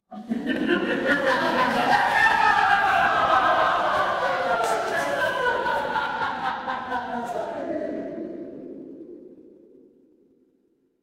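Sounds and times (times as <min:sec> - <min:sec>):
crowd laughing: 0:00.1 - 0:07.7.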